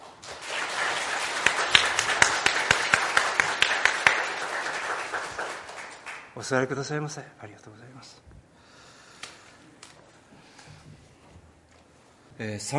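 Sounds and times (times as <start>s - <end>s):
congregation clapping in church after a prayer: 0.0s - 6.7s
speech: 6.4s - 8.4s, 12.4s - 12.7s.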